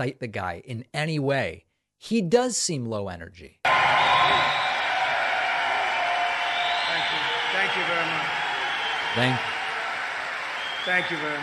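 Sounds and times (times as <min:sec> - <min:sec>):
speech: 0:00.0 - 0:04.7, 0:09.2 - 0:09.5, 0:10.8 - 0:11.4
crowd of people cheering: 0:03.6 - 0:11.4.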